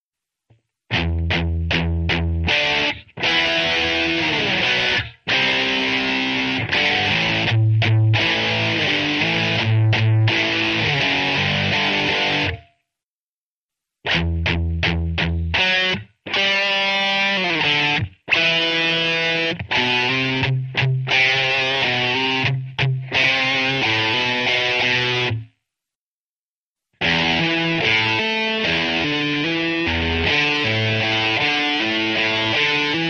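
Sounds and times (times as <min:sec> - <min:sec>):
rock guitar: 0:00.9 - 0:12.8, 0:14.1 - 0:25.5, 0:27.0 - 0:33.0.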